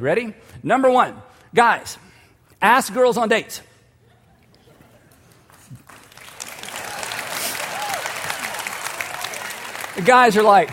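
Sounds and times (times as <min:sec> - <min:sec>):
speech: 0:00.0 - 0:03.7, 0:10.0 - 0:10.7
audience clapping: 0:05.1 - 0:10.7.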